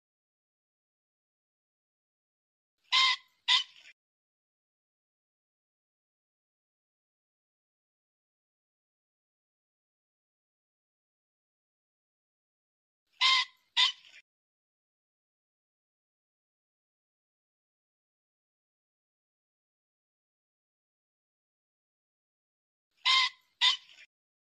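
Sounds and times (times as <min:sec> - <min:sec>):
pheasant squawking: 0:02.9 - 0:03.9, 0:13.2 - 0:14.2, 0:23.0 - 0:24.1.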